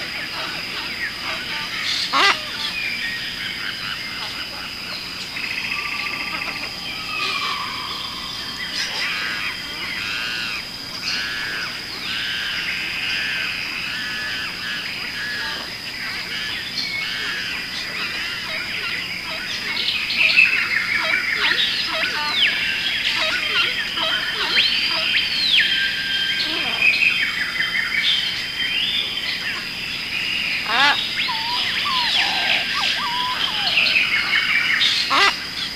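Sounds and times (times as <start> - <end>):
jungle forest ambience: 0.0 - 35.7.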